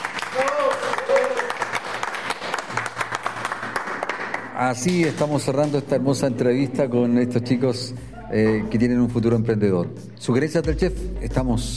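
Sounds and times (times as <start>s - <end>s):
applause: 0.0s - 5.8s
speech: 4.6s - 11.7s.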